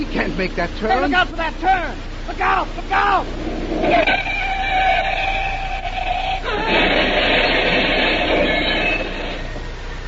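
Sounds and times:
speech: 0.1 - 5.2
car crashing into a big tree: 6.5 - 9.6.

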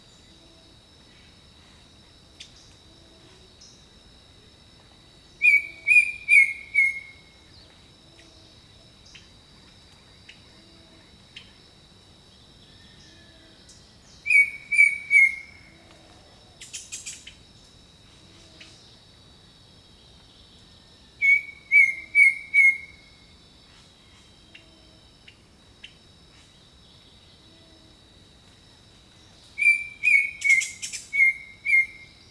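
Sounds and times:
bird singing level whistles: 5.4 - 7.1, 14.3 - 15.5, 21.2 - 22.9, 29.6 - 32.0.

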